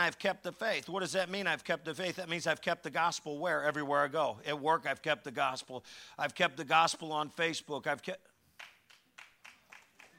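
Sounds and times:
speech: 0:00.0 - 0:08.3
sparse audience clapping: 0:08.5 - 0:10.1.

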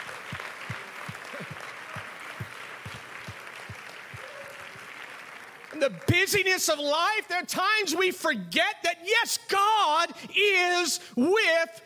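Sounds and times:
rhythmic beats: 0:00.0 - 0:04.4
audience clapping in praise: 0:00.0 - 0:06.9
speech: 0:05.8 - 0:11.8.

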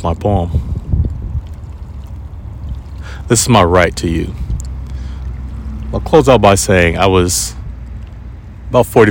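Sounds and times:
speech: 0:00.0 - 0:00.6, 0:03.3 - 0:04.5, 0:05.9 - 0:07.6, 0:08.7 - 0:09.1
river water lapping against rocks: 0:00.0 - 0:09.1.

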